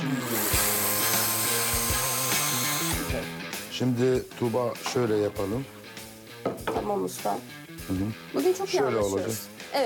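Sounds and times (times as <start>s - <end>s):
cordless screwdriver driving screws: 0.0s - 3.2s
speech: 3.8s - 5.8s, 6.5s - 9.8s.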